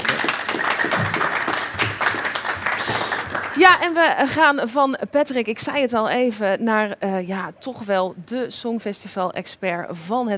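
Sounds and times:
audience applause: 0:00.0 - 0:03.8
speech: 0:03.6 - 0:10.3.

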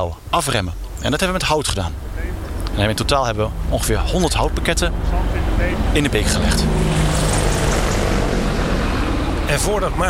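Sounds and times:
speech: 0:00.0 - 0:07.0, 0:09.5 - 0:10.0
two military helicopters flying low over treetops: 0:01.2 - 0:10.0.

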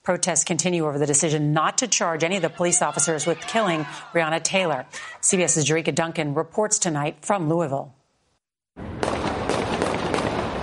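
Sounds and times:
speech: 0:00.0 - 0:08.0
gunfire erupting in downtown Louisville: 0:08.9 - 0:10.6.

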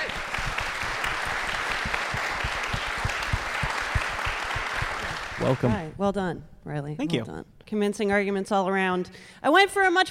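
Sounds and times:
audience applause for a stand-up comedian: 0:00.0 - 0:05.9
speech: 0:05.4 - 0:10.0.

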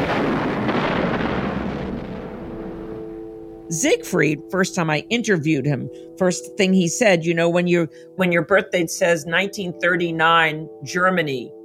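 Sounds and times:
bombs exploding in an air raid: 0:00.0 - 0:03.6
speech: 0:03.7 - 0:11.6.

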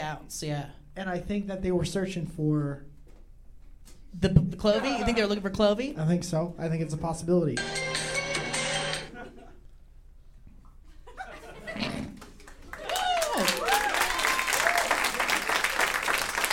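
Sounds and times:
speech: 0:00.1 - 0:02.9, 0:04.1 - 0:08.0
laughter: 0:09.1 - 0:09.7, 0:10.9 - 0:12.2
audience applause: 0:12.2 - 0:16.5.

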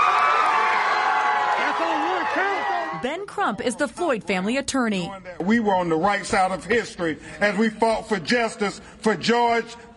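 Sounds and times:
crowd cheering outside courtroom: 0:00.0 - 0:03.2
speech: 0:03.0 - 0:09.9.

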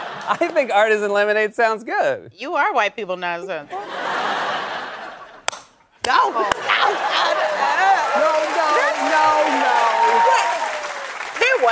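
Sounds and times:
laughter: 0:00.0 - 0:00.7, 0:03.7 - 0:05.5, 0:06.1 - 0:11.7
speech: 0:00.3 - 0:04.1, 0:06.1 - 0:07.6, 0:11.6 - 0:11.7
audience applause: 0:06.1 - 0:11.7.

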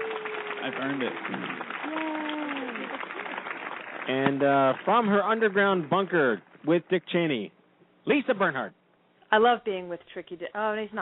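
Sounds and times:
applause sound effect: 0:00.0 - 0:06.4
speech: 0:00.6 - 0:02.1, 0:04.0 - 0:10.9.

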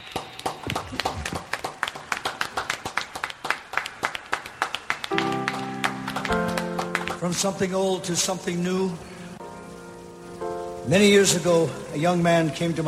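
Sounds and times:
audience applauding at a concert: 0:00.0 - 0:08.1
sustained musical tones: 0:05.1 - 0:12.3
speech: 0:07.2 - 0:09.1, 0:10.9 - 0:12.8.

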